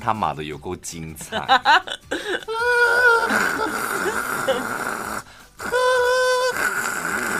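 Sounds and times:
speech: 0:00.0 - 0:05.0
laughter: 0:01.3 - 0:04.8
voice imitating snoring like a boiling kettle: 0:02.8 - 0:07.3.

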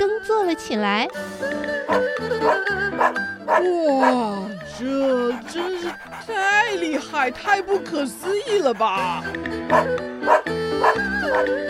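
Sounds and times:
speech: 0:00.0 - 0:11.6
dog barking: 0:01.9 - 0:04.2, 0:05.2 - 0:11.6.

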